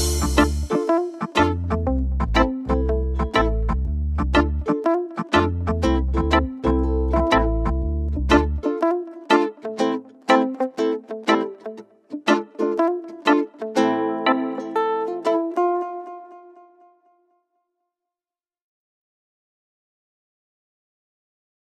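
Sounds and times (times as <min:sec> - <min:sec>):
reggae music: 0:00.0 - 0:16.6.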